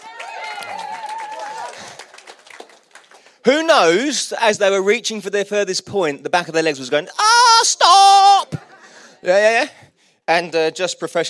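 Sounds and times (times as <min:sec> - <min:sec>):
audience applause: 0:00.0 - 0:03.4
speech: 0:03.4 - 0:07.7, 0:09.2 - 0:11.2.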